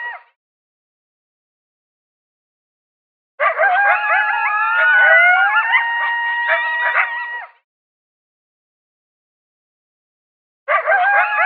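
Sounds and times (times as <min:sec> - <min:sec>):
coyotes howling and yipping: 0:03.4 - 0:07.6, 0:10.7 - 0:11.4.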